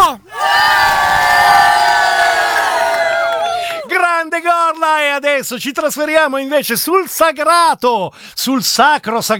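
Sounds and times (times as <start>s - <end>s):
crowd shouting and cheering: 0.2s - 4.0s
speech: 5.2s - 9.3s.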